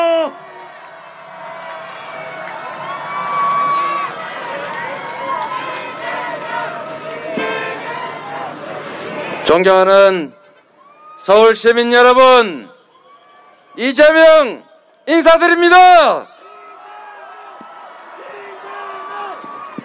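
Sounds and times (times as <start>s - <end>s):
crowd cheering at rally: 0.0s - 19.8s
crowd applause at rally: 0.2s - 9.6s, 16.3s - 19.8s
speech: 9.5s - 10.4s, 11.2s - 12.7s, 13.8s - 16.3s.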